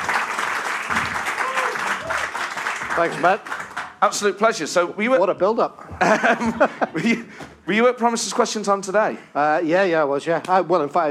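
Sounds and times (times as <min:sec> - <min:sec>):
audience clapping to welcome a guest: 0:00.0 - 0:04.4
speech: 0:03.0 - 0:11.1
laughter: 0:05.8 - 0:07.3.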